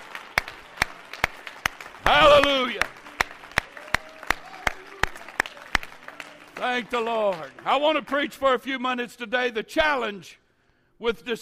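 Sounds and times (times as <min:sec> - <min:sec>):
crowd audience clapping hands: 0:00.0 - 0:08.5
speech: 0:06.8 - 0:10.4, 0:11.0 - 0:11.4.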